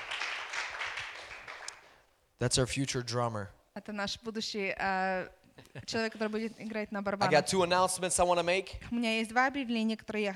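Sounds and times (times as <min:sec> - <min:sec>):
audience applause: 0:00.0 - 0:01.9
speech: 0:02.4 - 0:10.3.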